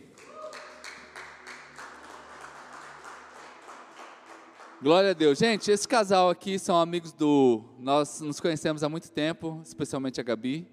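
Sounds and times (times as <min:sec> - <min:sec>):
church audience applauding: 0:00.0 - 0:06.0
speech: 0:04.8 - 0:10.7.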